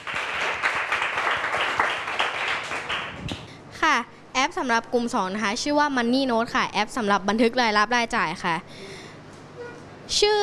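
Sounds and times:
group applause: 0.0s - 3.5s
speech: 4.6s - 8.9s, 10.1s - 10.4s.

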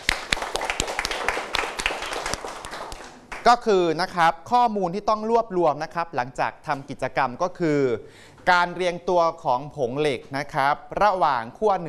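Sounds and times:
students clapping for a classmate: 0.0s - 3.5s
speech: 3.4s - 11.8s.

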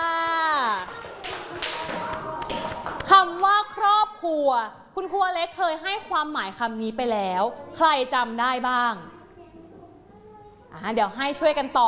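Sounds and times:
children clapping for themselves: 0.0s - 3.6s
speech: 4.4s - 9.1s, 10.8s - 11.8s.

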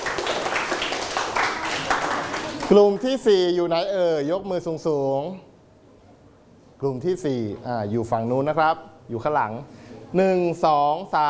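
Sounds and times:
group of people clapping hands during a group activity: 0.0s - 3.2s
speech: 2.7s - 5.5s, 6.8s - 11.2s.

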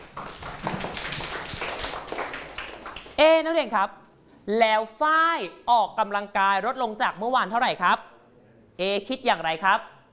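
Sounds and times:
classroom students clapping: 0.0s - 3.2s
speech: 3.3s - 8.1s, 8.8s - 9.9s.

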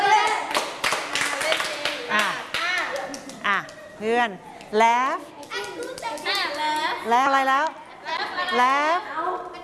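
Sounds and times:
hands clapping: 0.2s - 3.8s, 5.4s - 7.0s
speech: 4.0s - 7.8s, 8.5s - 9.3s.

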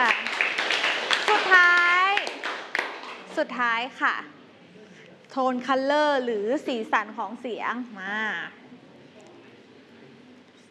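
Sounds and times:
classroom clapping for a classmate: 0.0s - 3.4s
speech: 3.4s - 4.4s, 5.3s - 8.6s.

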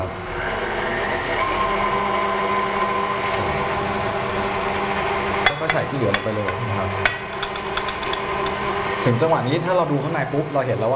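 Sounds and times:
electric mixer beating a mixture at low speed: 0.0s - 10.9s
speech: 5.9s - 7.2s, 9.0s - 10.9s.

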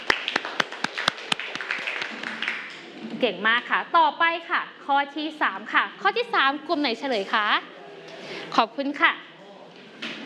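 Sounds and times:
classroom applause: 0.0s - 3.0s
speech: 3.2s - 7.7s, 8.5s - 9.2s.

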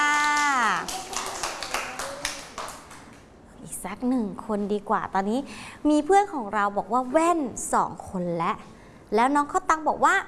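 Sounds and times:
audience clapping: 0.0s - 3.2s
speech: 3.8s - 10.2s.

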